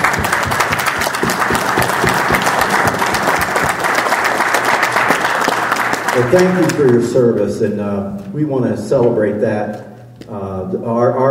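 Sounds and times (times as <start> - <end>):
audience applause: 0.0 - 7.1
speech: 6.2 - 11.2.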